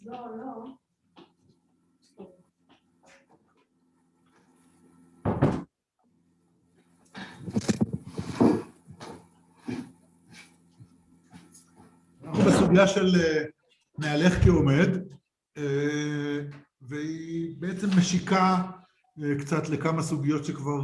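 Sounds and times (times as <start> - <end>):
speech: 0.2 - 0.8, 12.7 - 20.8
door closing in a room during a lecture: 5.2 - 5.7.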